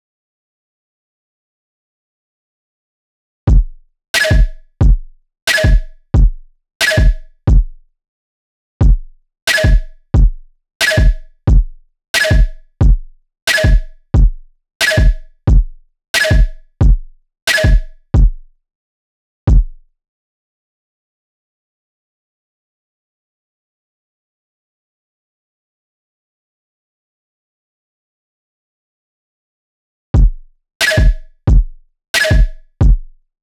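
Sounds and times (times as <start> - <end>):
harsh drums: 3.5 - 7.7, 8.8 - 18.4, 30.2 - 33.1.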